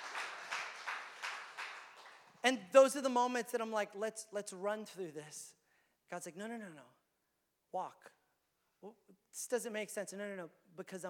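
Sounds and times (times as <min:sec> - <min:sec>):
audience clapping: 0:00.0 - 0:02.5
speech: 0:02.4 - 0:07.0, 0:07.7 - 0:08.2, 0:08.8 - 0:11.0.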